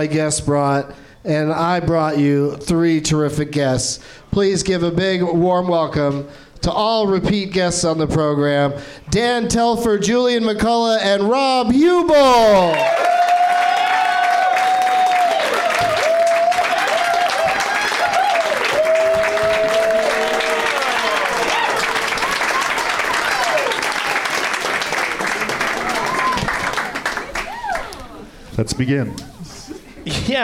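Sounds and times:
speech: 0:00.0 - 0:13.1, 0:28.6 - 0:29.3
audience applause and cheering, standing ovation: 0:12.5 - 0:28.3.

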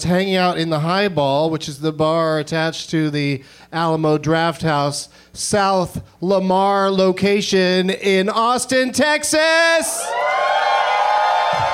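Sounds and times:
speech: 0:00.0 - 0:10.4
bar crowd cheering: 0:09.7 - 0:11.7.

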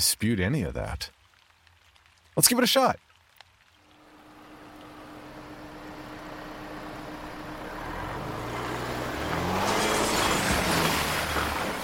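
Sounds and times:
speech: 0:00.0 - 0:01.2, 0:02.4 - 0:03.1
road and wind noise: 0:03.8 - 0:11.8
pickup truck engine driving fast with its tailgate open: 0:04.1 - 0:11.8.

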